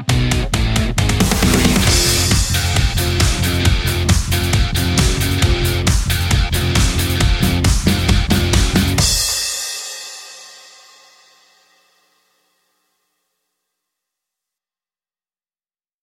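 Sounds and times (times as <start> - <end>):
instrumental metal music: 0.0 - 11.0.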